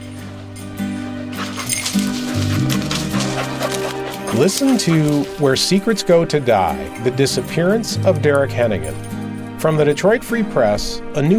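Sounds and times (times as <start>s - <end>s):
jingling clinks: 0.0s - 10.1s
search dog whimpering and yipping: 1.4s - 5.4s
speech: 4.4s - 11.3s.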